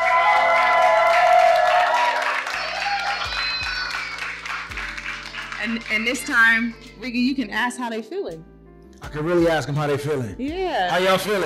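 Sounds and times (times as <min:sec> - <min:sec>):
live show audience in Sacramento, California cheering and applauding: 0:00.0 - 0:06.4
speech: 0:05.7 - 0:08.5, 0:09.1 - 0:11.4.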